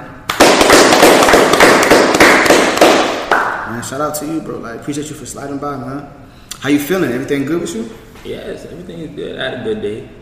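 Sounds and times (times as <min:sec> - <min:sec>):
clapping: 0:00.3 - 0:03.6
speech: 0:03.9 - 0:10.2.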